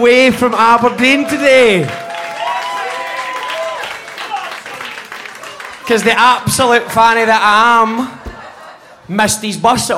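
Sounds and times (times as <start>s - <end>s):
speech: 0.0s - 2.0s, 5.9s - 8.2s, 9.1s - 9.9s
audience giving a round of applause: 0.7s - 7.4s
laughter: 5.3s - 9.4s.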